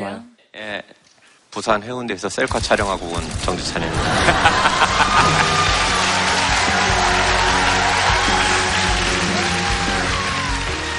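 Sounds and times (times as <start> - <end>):
speech: 0.0 - 5.6
laughter: 3.6 - 8.5
loud audience applause: 3.6 - 10.9.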